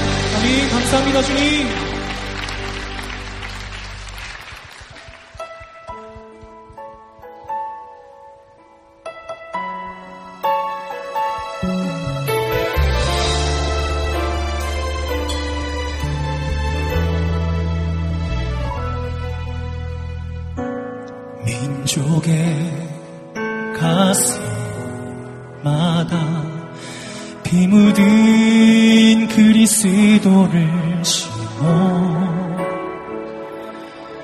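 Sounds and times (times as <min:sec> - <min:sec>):
audience applause: 0:00.0 - 0:05.8
sustained keyboard chords and melodic music: 0:00.0 - 0:34.2
speech: 0:00.5 - 0:02.0.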